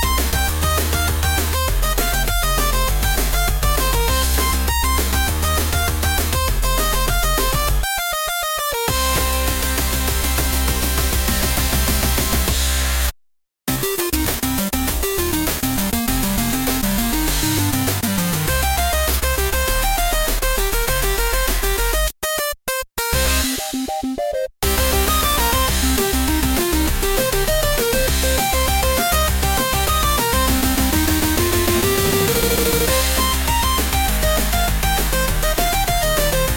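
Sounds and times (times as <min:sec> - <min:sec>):
background music: 0:00.0 - 0:12.7, 0:13.8 - 0:36.5.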